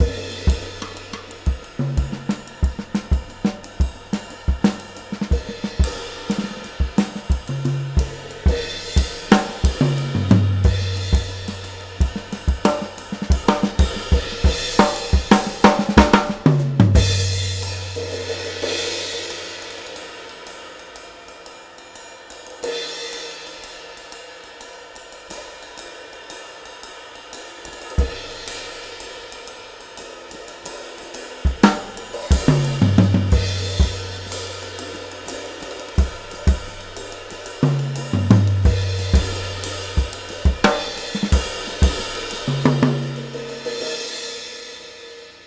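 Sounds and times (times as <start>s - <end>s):
jazzy drum loop with straight eighths: 0.0s - 19.0s, 30.5s - 44.0s.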